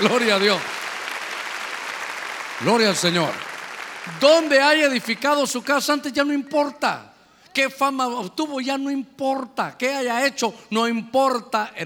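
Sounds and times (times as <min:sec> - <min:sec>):
speech: 0:00.0 - 0:00.8, 0:02.6 - 0:11.8
audience clapping loudly: 0:00.0 - 0:06.0.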